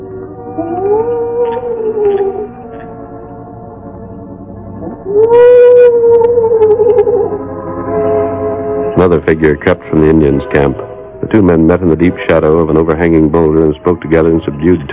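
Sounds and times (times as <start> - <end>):
low mournful owl cry: 0.4 - 2.8, 4.8 - 7.5
speech: 0.6 - 2.6, 4.9 - 8.1, 9.0 - 14.9.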